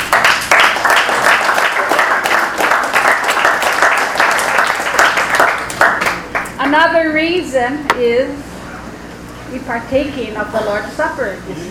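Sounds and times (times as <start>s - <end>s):
audience applause in a large room: 0.0s - 6.5s
speech: 6.7s - 8.5s, 9.5s - 11.7s.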